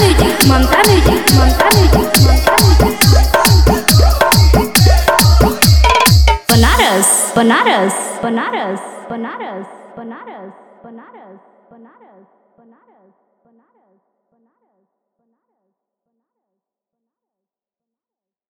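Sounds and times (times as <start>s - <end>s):
Bhojpuri DJ remix song: 0.0s - 9.0s.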